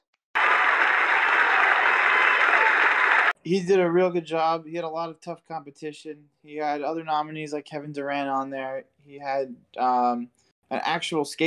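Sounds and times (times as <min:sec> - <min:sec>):
applause: 0:00.4 - 0:03.4
speech: 0:03.4 - 0:11.4.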